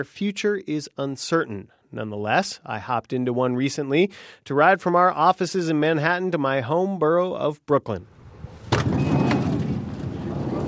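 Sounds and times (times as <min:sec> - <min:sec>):
speech: 0:00.0 - 0:08.2
low rumble of the taxi cab: 0:08.2 - 0:10.6
sliding door of a new New York taxi cab thudding: 0:08.3 - 0:10.6.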